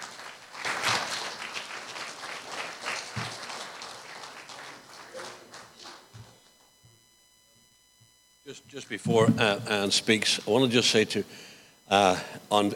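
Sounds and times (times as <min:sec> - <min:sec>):
congregation applauding to welcome a speaker at a church service: 0:00.0 - 0:06.4
speech: 0:08.5 - 0:12.7.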